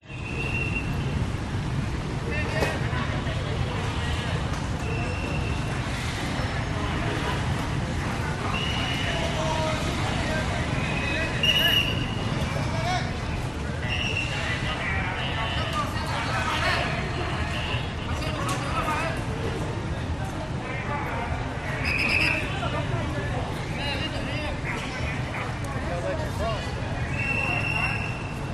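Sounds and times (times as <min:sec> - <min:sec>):
city street traffic at a police roadblock in Vietnam: 0:00.0 - 0:28.5.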